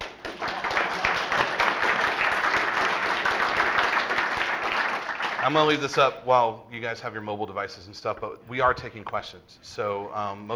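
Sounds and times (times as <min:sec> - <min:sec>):
audience applause: 0:00.0 - 0:06.1
speech: 0:05.4 - 0:10.5.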